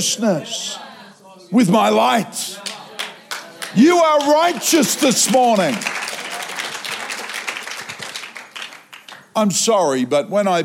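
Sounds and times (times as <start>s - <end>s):
speech: 0.0s - 0.9s, 1.5s - 2.7s, 3.7s - 6.0s, 9.4s - 10.6s
audience clapping: 2.6s - 9.4s.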